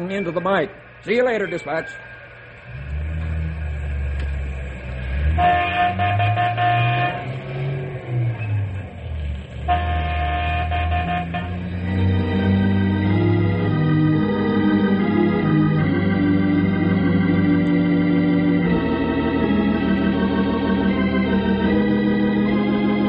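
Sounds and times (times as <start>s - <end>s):
speech: 0.0s - 2.8s, 5.4s - 6.2s
train rumbling on tracks: 0.0s - 23.0s
train horn blasts: 5.2s - 7.8s, 9.6s - 12.6s.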